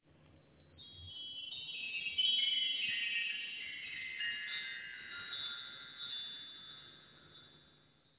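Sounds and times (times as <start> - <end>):
jingle: 2.3 - 8.1.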